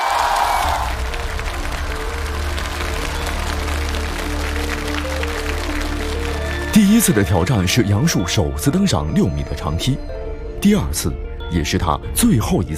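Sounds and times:
audience applause: 0.0 - 7.8
speech: 6.9 - 12.7.

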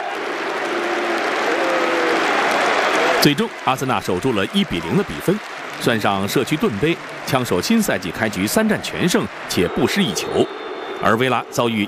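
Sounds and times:
football fans applauding in a stadium: 0.0 - 11.8
speech: 3.2 - 11.8
faint whistle-like tones: 7.4 - 11.8.

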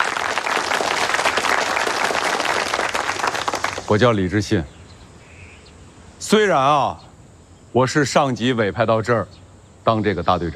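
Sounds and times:
crowd applause welcoming the new guerrilla brigade leader: 0.0 - 4.1
speech: 3.9 - 4.7, 6.2 - 7.1, 7.7 - 10.5.

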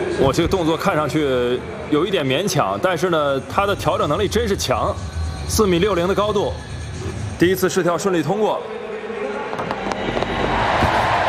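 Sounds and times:
speech: 0.2 - 6.7, 7.4 - 8.8
home crowd cheering at a women's pole vault competition in Britain: 9.4 - 11.2.

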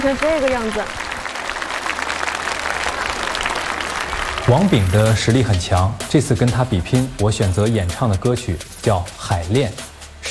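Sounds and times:
speech: 0.0 - 1.0, 4.5 - 10.2
standing applause after a song: 0.0 - 5.6.

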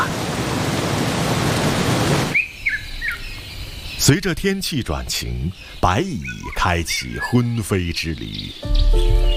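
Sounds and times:
rain falling: 0.0 - 2.4
speech: 4.0 - 9.2.

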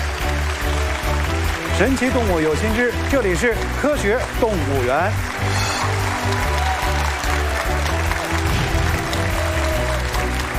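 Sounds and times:
audience applause: 0.0 - 10.5
speech: 1.8 - 5.6.

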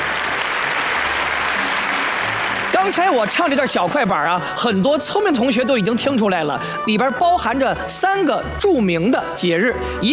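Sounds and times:
applause from three observers after a xiaokuaiban performance: 0.0 - 4.0
speech: 2.8 - 10.1.

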